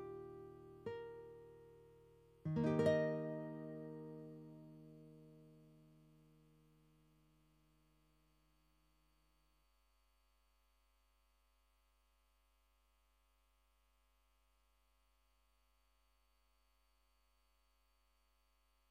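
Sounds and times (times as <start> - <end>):
guitar: 0.0 - 6.7.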